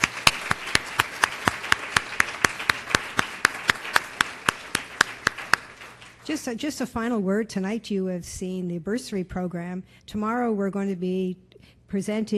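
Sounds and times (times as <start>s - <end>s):
applause at an evening program event: 0.0s - 6.3s
speech: 6.3s - 12.3s.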